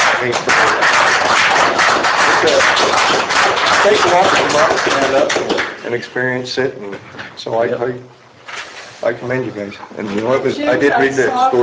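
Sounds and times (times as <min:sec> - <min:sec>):
audience applause: 0:00.0 - 0:05.8
speech: 0:00.2 - 0:00.8, 0:03.8 - 0:08.2, 0:09.0 - 0:11.6.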